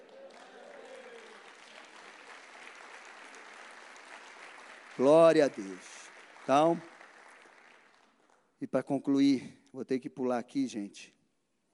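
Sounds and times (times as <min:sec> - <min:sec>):
audience applause: 0:00.0 - 0:08.4
speech: 0:05.0 - 0:06.9, 0:08.6 - 0:11.2.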